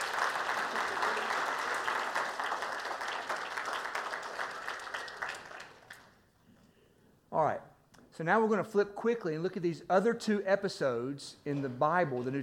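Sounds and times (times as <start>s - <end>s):
group clapping: 0.0s - 6.3s
speech: 8.2s - 12.4s.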